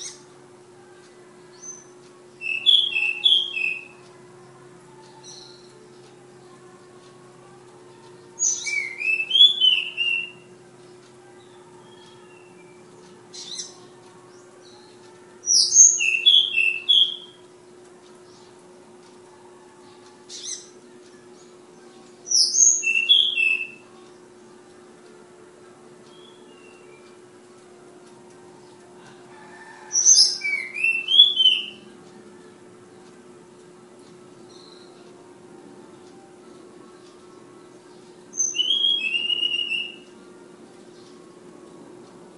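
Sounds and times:
flowerpecker song: 0.0 - 4.2, 7.4 - 17.5, 19.3 - 24.1, 26.0 - 27.2, 28.6 - 32.5, 34.4 - 35.2, 35.9 - 40.2.

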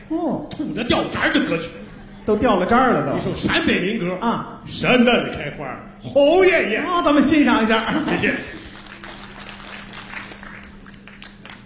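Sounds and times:
speech: 0.1 - 8.6
laughter: 1.5 - 3.8, 7.6 - 9.0
audience applause: 7.6 - 11.6.

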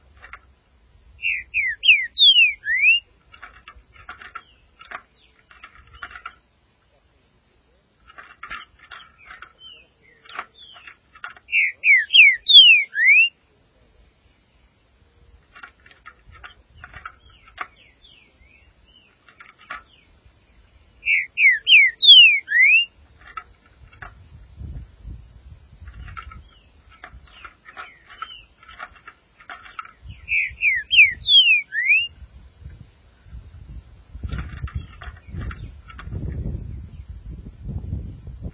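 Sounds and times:
green-winged saltator slurred whistles: 1.2 - 3.1, 11.5 - 13.3, 21.0 - 22.9, 30.3 - 32.1.

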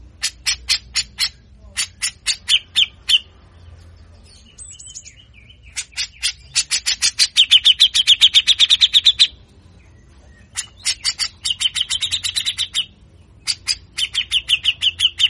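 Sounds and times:
grey-cheeked bulbul rasping song in buzzy pulses: 0.0 - 15.2.

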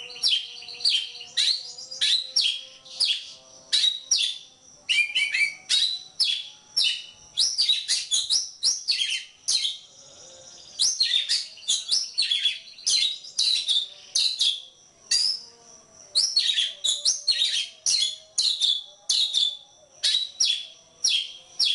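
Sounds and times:
Oriental magpie-robin whistling: 0.0 - 9.8, 10.8 - 15.4, 16.2 - 21.7.

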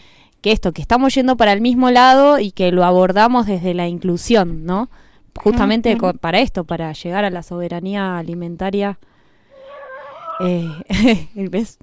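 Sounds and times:
speech: 0.4 - 9.1, 10.4 - 11.8
hen clucking: 9.5 - 10.8.

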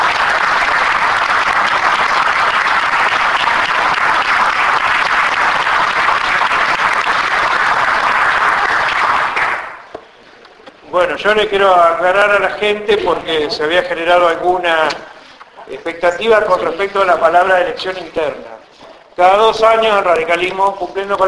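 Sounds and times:
audience clapping for a new committee president at a political party conference: 0.0 - 10.2
speech: 11.2 - 15.1, 15.9 - 18.6, 19.2 - 21.2.

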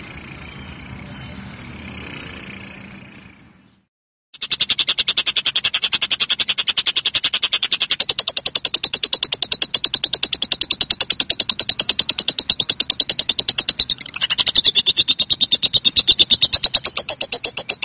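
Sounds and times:
lovebird chattering: 4.4 - 17.8.

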